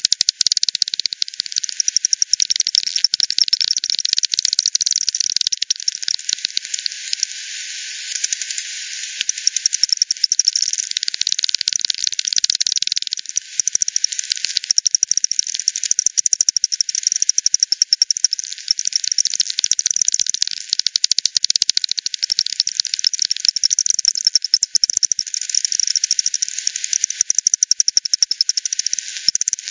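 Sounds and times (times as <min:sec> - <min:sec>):
bat echolocation calls brought down to audible range: 0:00.0 - 0:07.4, 0:08.1 - 0:29.7.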